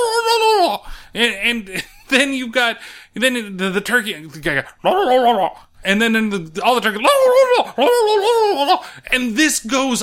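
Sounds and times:
speech: 1.2 - 10.0
person imitating turkey gobbling: 4.8 - 5.6, 7.0 - 8.8.

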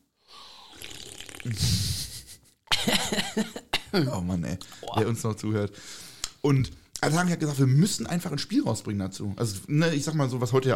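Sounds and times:
person slurping an energy drink: 0.6 - 2.0
speech: 1.5 - 2.0, 3.4 - 10.7
laughter: 1.8 - 3.7.

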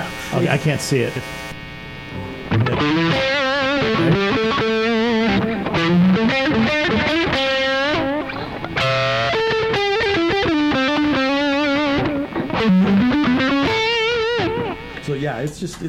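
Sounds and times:
distorted electric guitar through an amp simulator, speaker emulator off, Friedman voicing: 0.0 - 15.5
speech: 0.3 - 1.4, 15.2 - 15.8.

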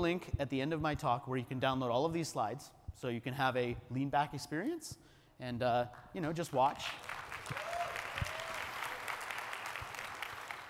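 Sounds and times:
speech: 0.0 - 7.7
audience applause: 6.9 - 10.6.

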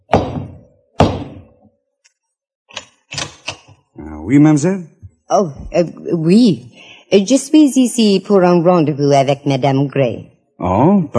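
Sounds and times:
huge heavy door knocker whacked: 0.0 - 1.6
speech: 4.3 - 11.1.

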